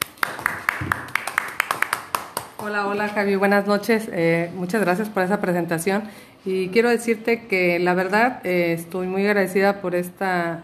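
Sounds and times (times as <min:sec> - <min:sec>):
audience clapping: 0:00.0 - 0:03.1
faint hum: 0:00.0 - 0:10.6
speech: 0:02.6 - 0:10.6.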